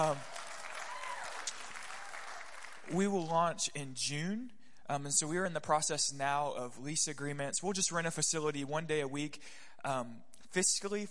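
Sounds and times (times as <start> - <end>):
speech: 0.0 - 0.3, 2.9 - 11.0
audience clapping: 0.0 - 3.4.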